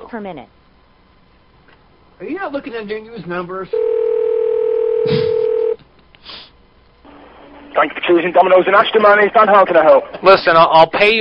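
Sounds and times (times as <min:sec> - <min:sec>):
speech: 0:00.1 - 0:00.6, 0:02.2 - 0:04.2, 0:05.0 - 0:05.4, 0:07.8 - 0:11.1
telephone line tone while dialing a number: 0:03.7 - 0:05.8.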